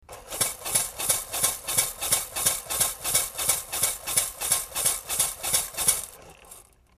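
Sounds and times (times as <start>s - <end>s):
rattling: 0.0s - 6.9s.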